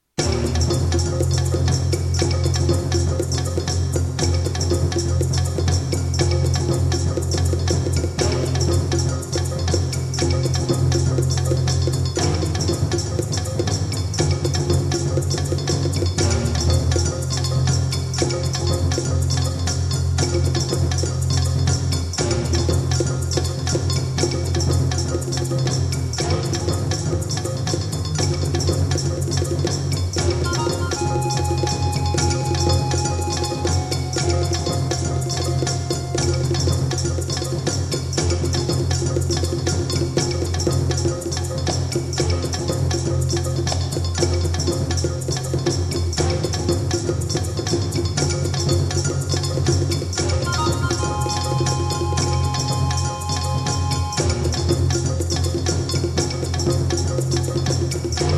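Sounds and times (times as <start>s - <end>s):
tribal music: 0.2s - 58.3s.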